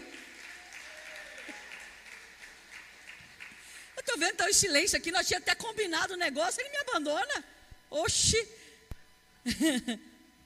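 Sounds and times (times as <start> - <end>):
audience applauding: 0.0 - 4.0
speech: 4.2 - 8.6, 9.4 - 10.1
laughter: 9.5 - 10.0.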